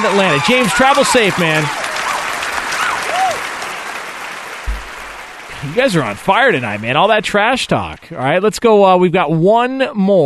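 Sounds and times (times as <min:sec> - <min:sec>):
speech: 0:00.0 - 0:01.8, 0:05.6 - 0:10.2
applause: 0:00.0 - 0:08.1.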